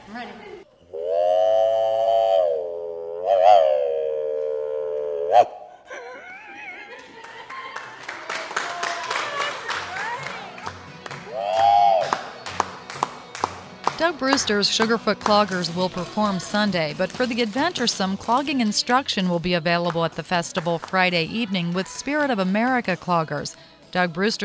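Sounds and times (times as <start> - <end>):
speech: 0.1 - 1.2, 14.1 - 24.4
voice imitating a train whistle in the throat: 0.9 - 5.8, 11.3 - 12.2
laughter: 5.8 - 10.5
scattered clapping: 6.9 - 21.7.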